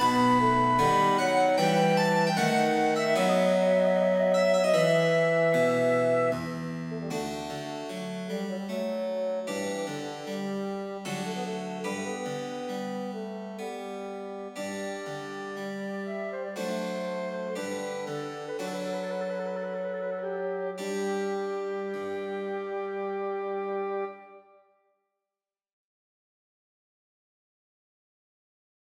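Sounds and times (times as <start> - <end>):
flute: 0.0 - 7.5, 11.1 - 12.3, 15.0 - 24.6
piano: 0.0 - 24.3
bassoon: 0.0 - 24.6.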